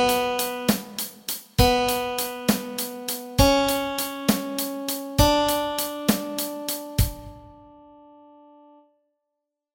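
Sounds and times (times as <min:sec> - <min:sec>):
melody: 0:01.6 - 0:08.8.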